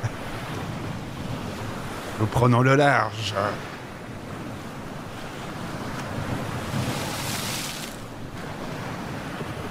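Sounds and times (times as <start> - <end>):
stormy sea waves: 0.0 - 9.6
speech: 2.2 - 3.7.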